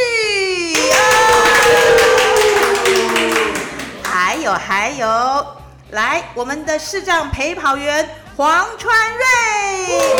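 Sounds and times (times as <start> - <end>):
audience applause: 0.8 - 4.2
speech: 4.5 - 10.1.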